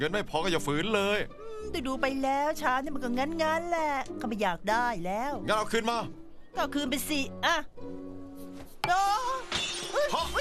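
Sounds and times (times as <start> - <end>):
speech: 0.0 - 8.2, 8.8 - 10.4
object dropped and shattering: 9.3 - 10.4.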